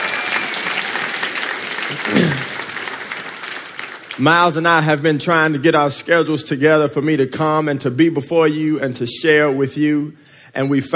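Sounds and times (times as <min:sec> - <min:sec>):
audience applause: 0:00.0 - 0:04.9
speech: 0:01.9 - 0:02.5, 0:04.2 - 0:10.9.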